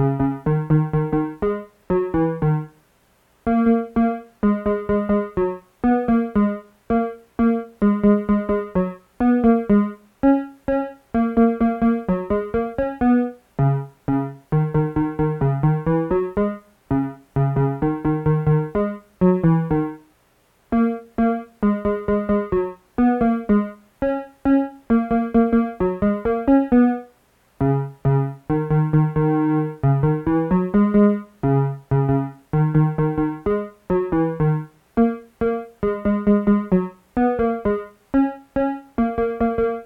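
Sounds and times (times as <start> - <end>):
Korg synthesizer: 0.0 - 2.8, 3.4 - 20.1, 20.7 - 39.8.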